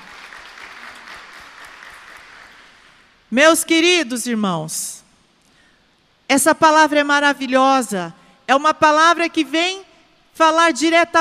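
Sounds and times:
audience applauding: 0.0s - 3.0s
speech: 3.3s - 5.0s, 6.3s - 9.8s, 10.4s - 11.1s.

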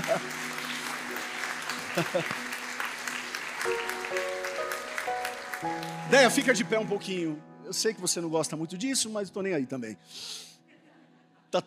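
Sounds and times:
audience applauding: 0.0s - 7.0s
speech: 2.0s - 2.5s, 6.1s - 10.5s.

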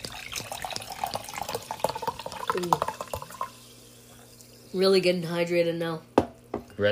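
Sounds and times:
San Pellegrino sparkling water pouring: 0.0s - 5.4s
speech: 2.6s - 2.9s, 4.7s - 6.1s, 6.8s - 6.9s.

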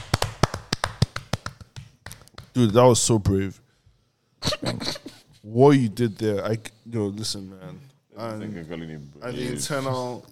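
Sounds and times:
slow clap: 0.0s - 3.4s
speech: 2.6s - 3.6s, 4.5s - 10.3s.

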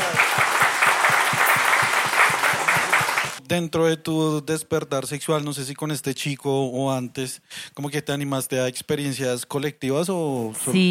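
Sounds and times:
audience applause: 0.0s - 3.4s
speech: 3.5s - 10.8s.

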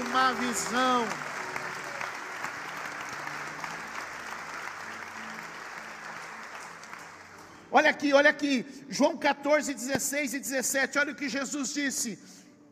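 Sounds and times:
audience applauding: 0.0s - 7.6s
speech: 0.2s - 1.3s, 7.7s - 12.4s.

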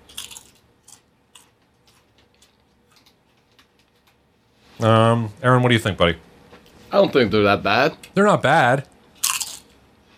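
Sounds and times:
chewing crunchy snack: 0.0s - 4.2s, 9.2s - 9.8s
speech: 4.8s - 6.3s, 6.9s - 8.9s.

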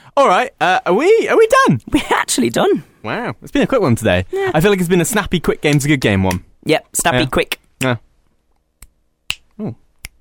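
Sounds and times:
speech: 0.2s - 8.1s, 9.6s - 9.8s
fingers snapping: 8.8s - 10.1s.

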